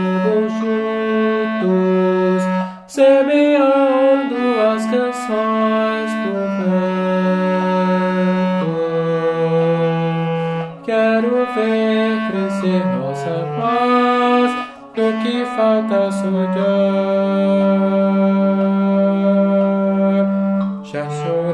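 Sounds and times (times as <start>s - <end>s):
tenor saxophone playing: 0.0s - 21.5s.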